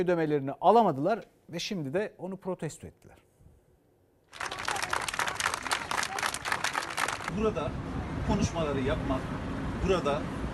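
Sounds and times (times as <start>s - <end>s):
speech: 0.0s - 3.3s, 7.3s - 10.4s
protest applause by health workers: 4.3s - 7.4s.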